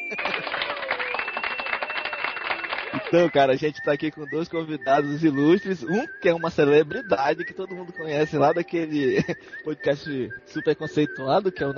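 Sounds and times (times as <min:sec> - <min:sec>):
laughter: 0:00.0 - 0:01.8, 0:08.9 - 0:09.5
person whooping: 0:00.0 - 0:03.2
audience applause: 0:00.0 - 0:03.4
speech: 0:03.0 - 0:11.7.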